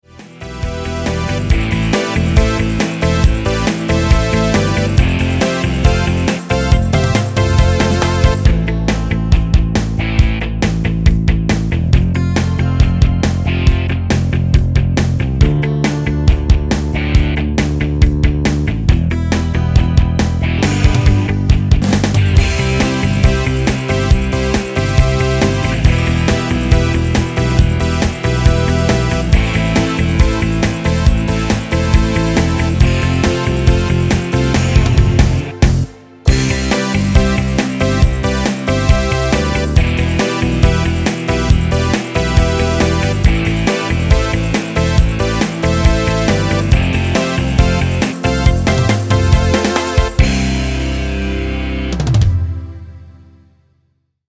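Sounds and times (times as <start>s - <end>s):
rock music: 0.0s - 53.4s.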